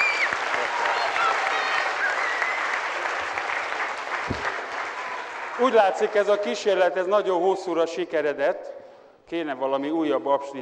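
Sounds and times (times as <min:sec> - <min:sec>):
audience applause: 0:00.0 - 0:06.4
speech: 0:05.6 - 0:08.7, 0:09.3 - 0:10.6.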